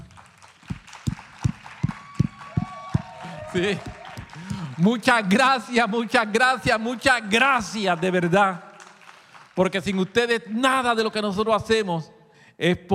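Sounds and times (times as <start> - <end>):
audience applause: 0.0 - 10.4
speech: 3.6 - 4.0, 4.8 - 8.7, 9.6 - 12.9.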